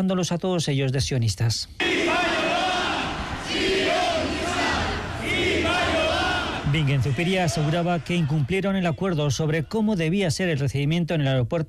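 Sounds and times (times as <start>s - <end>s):
speech: 0.0s - 2.3s, 6.8s - 11.6s
protest crowd shouting: 1.8s - 9.7s.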